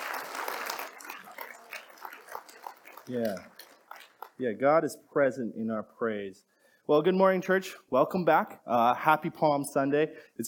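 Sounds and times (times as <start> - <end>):
audience clapping in praise: 0.0 - 4.4
speech: 3.1 - 3.5, 4.4 - 10.4.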